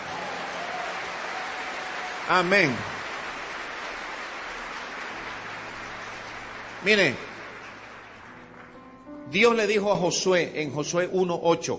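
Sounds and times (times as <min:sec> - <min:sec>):
crowd applauding: 0:00.0 - 0:09.1
speech: 0:02.3 - 0:03.0, 0:06.8 - 0:07.3, 0:09.3 - 0:11.7.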